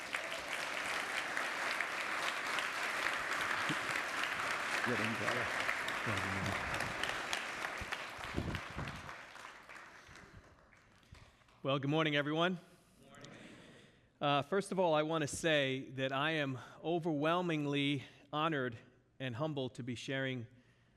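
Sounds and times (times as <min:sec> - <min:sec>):
church congregation applauding a new campus pastor: 0:00.0 - 0:11.6
speech: 0:04.9 - 0:07.0, 0:11.6 - 0:12.7, 0:14.2 - 0:20.6.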